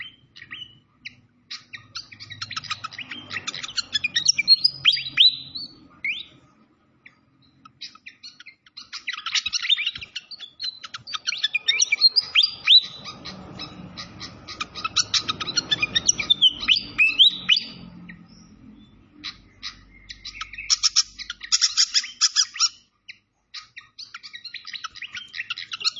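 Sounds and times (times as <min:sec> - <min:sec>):
Malaysian pied fantail chirps and whistles: 0:00.0 - 0:06.3, 0:07.8 - 0:17.8, 0:19.2 - 0:22.8.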